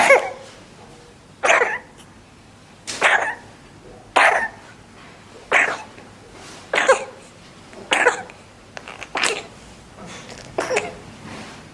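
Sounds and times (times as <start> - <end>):
infant coughing with RSV: 0.0 - 0.4, 1.4 - 2.1, 3.0 - 3.4, 4.2 - 4.6, 5.5 - 6.0, 6.7 - 7.3, 7.9 - 8.4, 9.1 - 9.5, 10.6 - 11.0.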